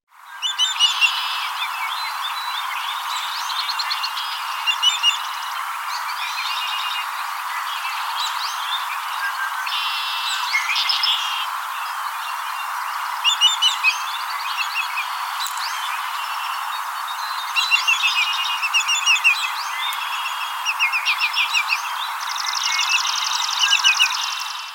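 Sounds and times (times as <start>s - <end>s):
Savannah sparrow song: 0.2s - 24.7s.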